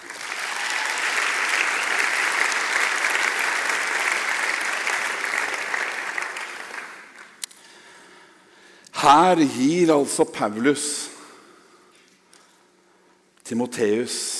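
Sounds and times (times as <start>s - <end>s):
audience applause: 0.0s - 7.4s
speech: 9.0s - 11.1s, 13.5s - 14.3s.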